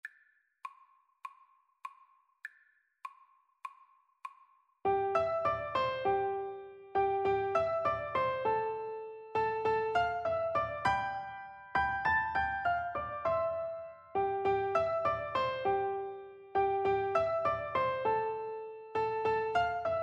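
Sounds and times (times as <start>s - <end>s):
piano duet: 4.9s - 20.0s.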